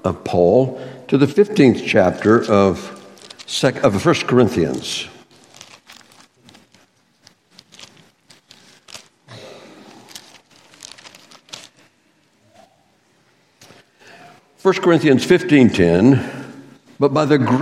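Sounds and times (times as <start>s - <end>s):
speech: 0.0s - 5.1s, 14.6s - 16.4s, 17.0s - 17.6s
Bible pages turning during a church sermon: 1.6s - 12.4s.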